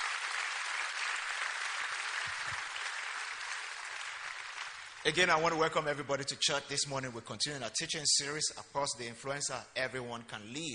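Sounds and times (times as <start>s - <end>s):
church congregation applauding: 0.0s - 5.6s
speech: 5.0s - 10.7s.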